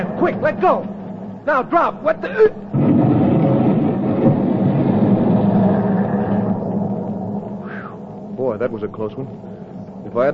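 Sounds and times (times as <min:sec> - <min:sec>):
speech: 0:00.0 - 0:03.0, 0:08.6 - 0:10.3
explosion of a dock engine: 0:02.7 - 0:09.0.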